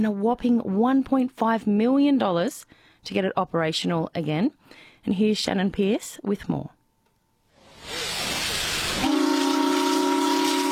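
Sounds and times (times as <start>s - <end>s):
speech: 0.0s - 6.8s
paddle steamer steam hiss: 7.6s - 10.7s.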